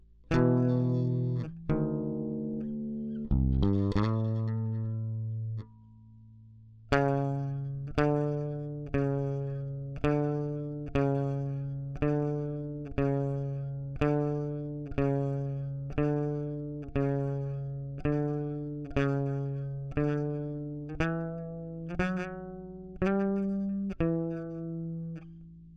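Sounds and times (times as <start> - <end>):
bass phrases: 0.0 - 25.7.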